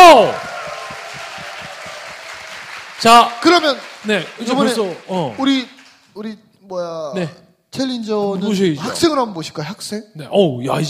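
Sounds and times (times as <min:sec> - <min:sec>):
audience applauding: 0:00.0 - 0:06.2
speech: 0:03.0 - 0:10.8.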